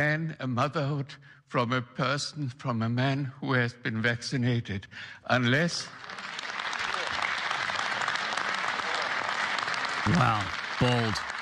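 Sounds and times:
speech: 0.0 - 6.3, 10.1 - 11.3
round of applause from audience: 5.4 - 11.4.

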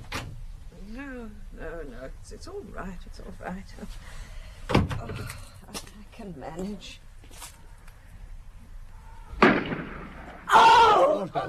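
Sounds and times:
speech: 2.0 - 7.4, 10.5 - 11.4
gunshot: 9.4 - 10.5
person shouting: 10.5 - 11.4.

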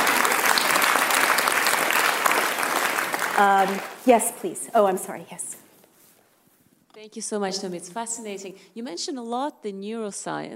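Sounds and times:
audience clapping: 0.0 - 4.5
speech: 3.4 - 5.6, 7.0 - 10.5.

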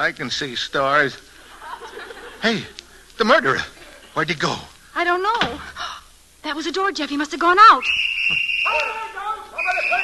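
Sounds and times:
speech: 0.0 - 1.3, 2.4 - 10.0
laughter: 1.4 - 4.3
police whistles blowing: 7.8 - 10.0.

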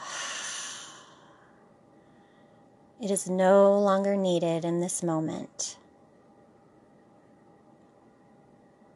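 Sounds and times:
deep breath in through the nose and out through the mouth: 0.0 - 2.7
speech: 3.0 - 5.8.

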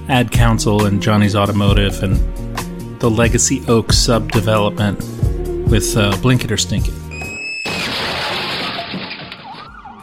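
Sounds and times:
speech: 0.1 - 2.4, 3.0 - 7.0
car crash sound effect: 7.6 - 10.0.

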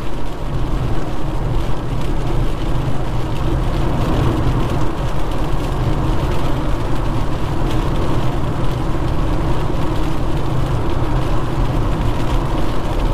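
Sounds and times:
car engine and road rumble driving at night: 0.0 - 13.1
hiss of rain and tire spray: 0.0 - 13.1.

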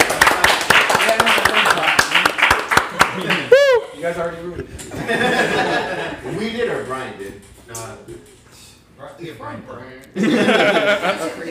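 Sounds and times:
small group of people clapping: 0.0 - 3.7
laughter: 4.9 - 6.4, 10.2 - 11.4
speech: 6.4 - 8.3, 9.1 - 11.4.

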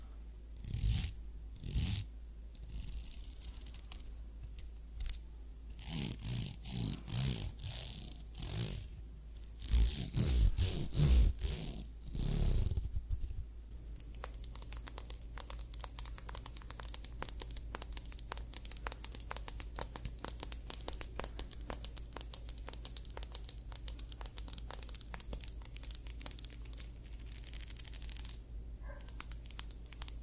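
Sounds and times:
scalp massage scratchy crinkling rubs: 0.6 - 30.2
fine crackling ticks: 14.0 - 30.2.

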